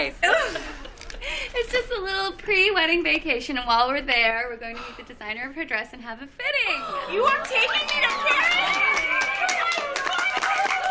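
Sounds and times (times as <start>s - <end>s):
speech: 0.0s - 0.3s, 1.5s - 9.3s
people clapping: 7.0s - 10.9s.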